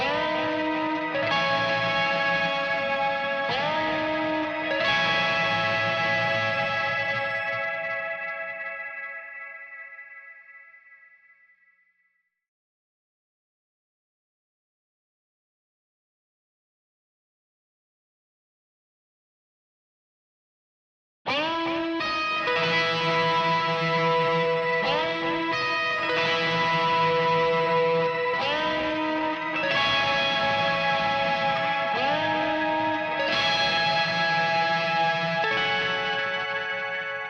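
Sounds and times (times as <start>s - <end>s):
guitar: 0.0s - 11.7s, 21.3s - 37.2s.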